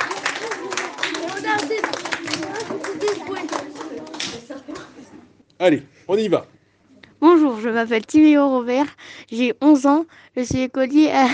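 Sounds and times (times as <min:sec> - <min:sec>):
audience clapping: 0:00.0 - 0:05.0
speech: 0:05.6 - 0:06.5, 0:07.3 - 0:11.3.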